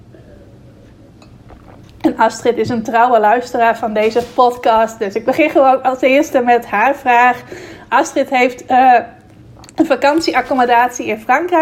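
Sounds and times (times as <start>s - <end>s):
quick sip of water: 0.5s - 2.1s, 9.2s - 9.8s
speech: 2.1s - 9.2s, 9.8s - 11.5s.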